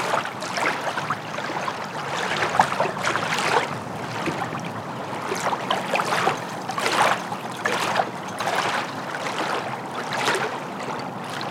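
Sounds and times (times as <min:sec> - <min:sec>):
water lapping on the shore of Zukey Lake: 0:00.0 - 0:11.4.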